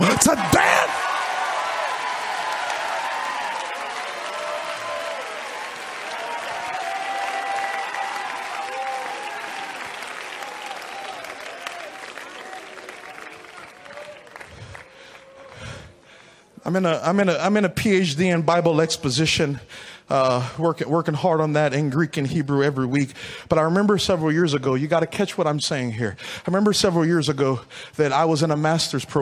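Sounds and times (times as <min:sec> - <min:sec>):
audience shouting: 0:00.0 - 0:12.6
audience clapping: 0:00.0 - 0:15.9
speech: 0:00.2 - 0:00.7, 0:16.7 - 0:29.2.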